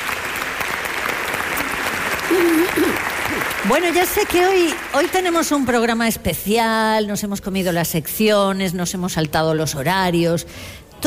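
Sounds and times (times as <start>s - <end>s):
theatre audience applause: 0.0s - 5.7s
speech: 2.3s - 11.0s.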